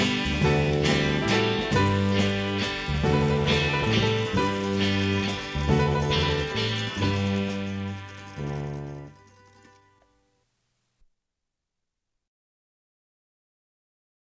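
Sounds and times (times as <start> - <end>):
instrumental waltz: 0.0 - 9.8.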